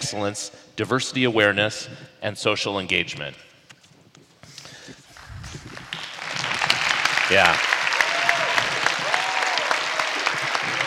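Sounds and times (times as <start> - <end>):
speech: 0.1 - 3.5, 7.3 - 7.8
audience applause: 5.2 - 10.8.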